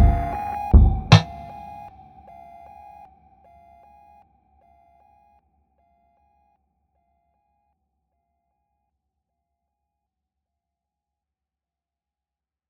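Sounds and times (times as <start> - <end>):
sine wave tone: 0.0 - 7.7.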